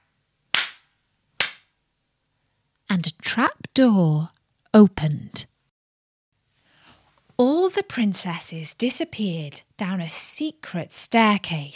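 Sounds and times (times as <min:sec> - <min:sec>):
hand claps: 0:00.5 - 0:00.8, 0:01.4 - 0:01.7
speech: 0:03.0 - 0:05.5, 0:07.4 - 0:11.7.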